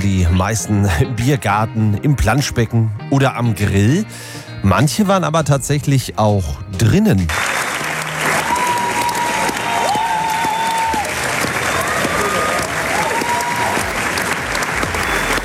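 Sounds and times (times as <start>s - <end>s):
speech: 0.0s - 7.6s
closing applause at an opera premiere in a theater: 7.3s - 15.4s.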